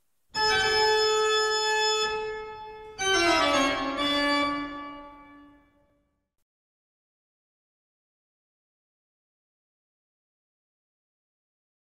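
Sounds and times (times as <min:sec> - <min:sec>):
classical toccata: 0:00.4 - 0:05.6.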